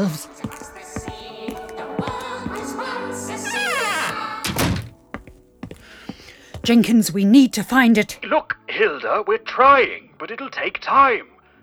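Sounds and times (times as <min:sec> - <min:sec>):
speech: 0:00.0 - 0:00.3, 0:06.7 - 0:11.3
door closing: 0:00.0 - 0:06.9.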